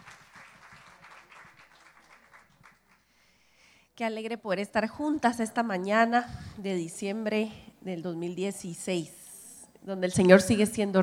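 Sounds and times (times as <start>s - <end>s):
audience applause: 0.0s - 3.0s
speech: 4.0s - 9.2s, 9.8s - 11.0s.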